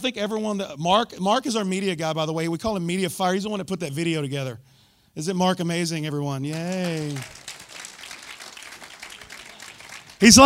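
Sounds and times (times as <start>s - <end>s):
speech: 0.0s - 7.4s, 10.2s - 10.4s
crowd applauding: 6.5s - 10.4s.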